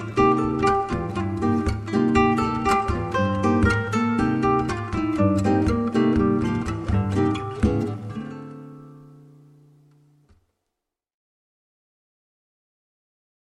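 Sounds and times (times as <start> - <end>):
acoustic music: 0.0 - 10.6.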